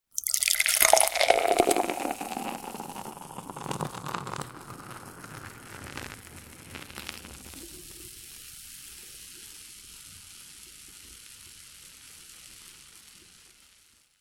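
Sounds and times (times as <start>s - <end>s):
beer pouring into glass: 0.1s - 6.2s.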